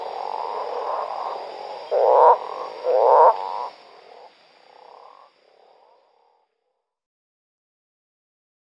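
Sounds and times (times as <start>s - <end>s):
Osteocephalus taurinus calling: 0.0s - 6.6s.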